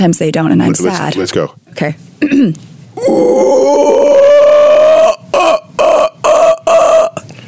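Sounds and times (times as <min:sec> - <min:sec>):
speech: 0:00.0 - 0:03.7
person imitating a howler monkey call: 0:03.0 - 0:07.2.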